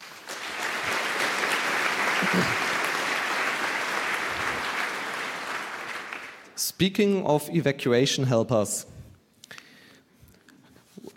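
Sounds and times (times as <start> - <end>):
audience applause: 0.0 - 6.6
speech: 2.3 - 2.6, 6.8 - 8.9.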